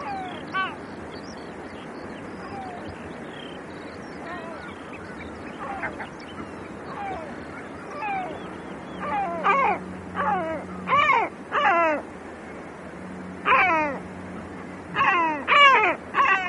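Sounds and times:
great black-backed gull giving hoarse mewing calls: 0.0 - 0.9, 4.2 - 16.4.

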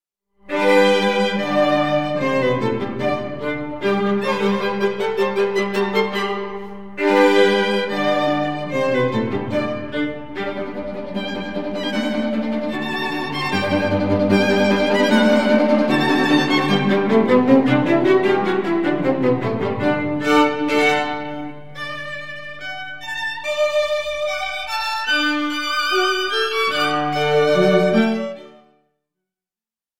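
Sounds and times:
string quartet playing: 0.5 - 28.6.

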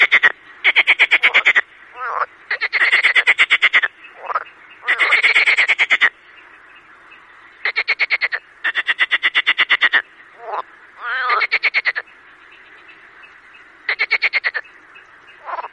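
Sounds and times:
marsh frogs giving fast pulsed rattling croaks: 0.0 - 15.7.

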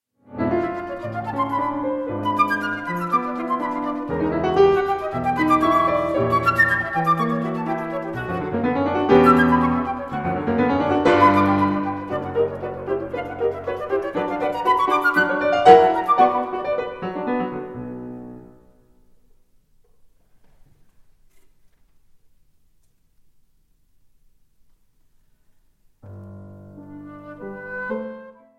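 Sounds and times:
flute and piano sonata in E minor: 0.2 - 19.1, 26.0 - 28.5.

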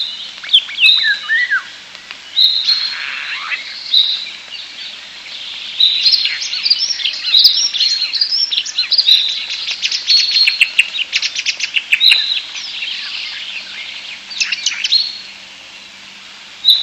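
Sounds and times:
European starlings chattering: 0.0 - 15.8.

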